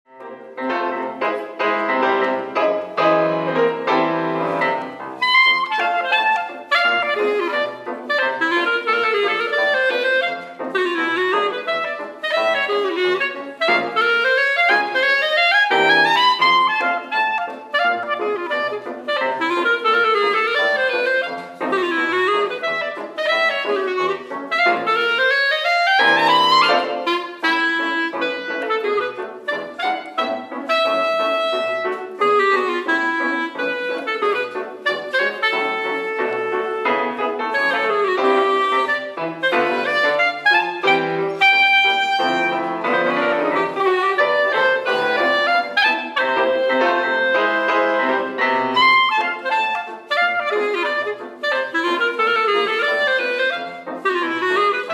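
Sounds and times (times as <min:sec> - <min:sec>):
jazz music: 0:00.1 - 0:54.9.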